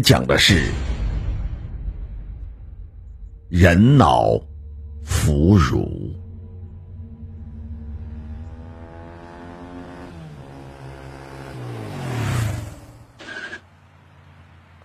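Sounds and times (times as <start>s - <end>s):
speech: 0.0s - 0.9s, 3.5s - 6.2s
motorcycle riding up and stopping: 6.2s - 14.8s.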